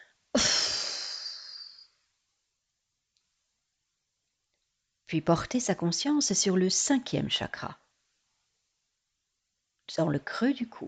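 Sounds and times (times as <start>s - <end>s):
person breathing during a guided chakra meditation: 0.0s - 1.8s
speech: 5.1s - 7.8s, 9.9s - 10.8s.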